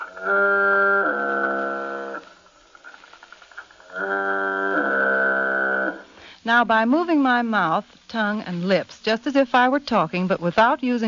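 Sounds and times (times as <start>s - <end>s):
foghorn recording played through Sonovox: 0.0s - 2.4s, 3.9s - 6.2s
speech: 0.2s - 0.4s, 6.5s - 11.0s.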